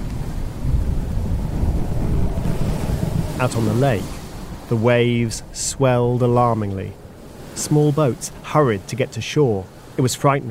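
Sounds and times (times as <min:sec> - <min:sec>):
deep rumbling thunder: 0:00.0 - 0:07.6
stormy blustery wind: 0:00.0 - 0:10.0
speech: 0:03.4 - 0:07.0, 0:07.6 - 0:10.4.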